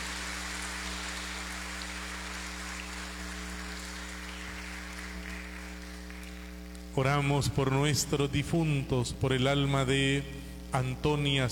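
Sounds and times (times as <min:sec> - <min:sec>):
audience applauding: 0:00.0 - 0:06.8
low electrical hum: 0:00.0 - 0:11.4
speech: 0:07.0 - 0:11.4.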